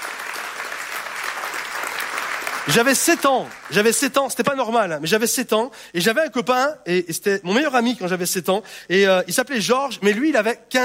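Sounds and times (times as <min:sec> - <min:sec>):
audience applause: 0:00.0 - 0:04.0
speech: 0:02.6 - 0:10.8.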